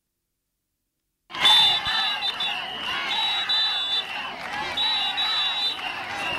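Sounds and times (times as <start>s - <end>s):
health workers protesting, shouting outside hospital: 1.3s - 6.3s
shrill whistle-like tone: 1.4s - 6.3s.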